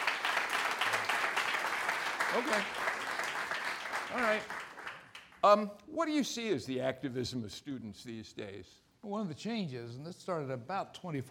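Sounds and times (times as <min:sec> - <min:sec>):
audience applause: 0:00.0 - 0:05.4
speech: 0:02.3 - 0:02.9, 0:04.1 - 0:04.6, 0:05.4 - 0:11.2.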